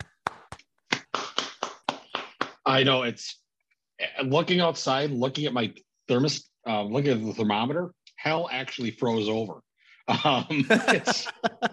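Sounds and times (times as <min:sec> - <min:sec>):
hand clapping celebrating a Detroit Lions win: 0:00.0 - 0:02.6
speech: 0:02.7 - 0:03.4, 0:04.0 - 0:11.7
laughter: 0:10.1 - 0:11.7.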